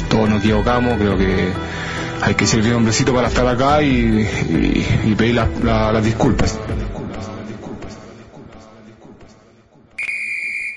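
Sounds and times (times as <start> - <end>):
speech: 0.4 - 6.8
referee's final whistle blast: 10.0 - 10.7.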